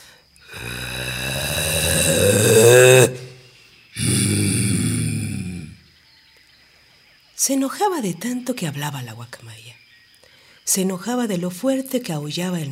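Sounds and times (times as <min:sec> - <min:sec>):
jaguar roaring angrily: 0:00.5 - 0:05.8
speech: 0:07.4 - 0:09.8, 0:10.7 - 0:12.7.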